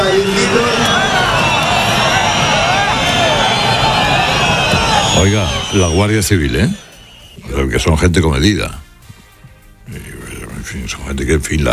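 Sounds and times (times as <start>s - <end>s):
large crowd booing: 0.0s - 7.4s
speech: 5.2s - 8.8s, 10.7s - 11.7s.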